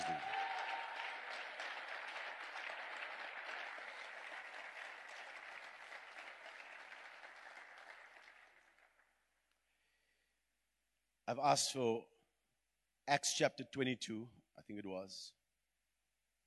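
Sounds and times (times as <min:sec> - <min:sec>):
audience clapping hands: 0:00.0 - 0:09.4
speech: 0:11.3 - 0:12.1, 0:13.1 - 0:15.4.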